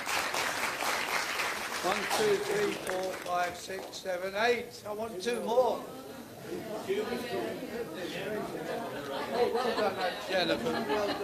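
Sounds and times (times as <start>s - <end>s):
crowd applauding: 0.0s - 4.0s
speech: 1.8s - 11.2s
laughter: 6.4s - 11.2s.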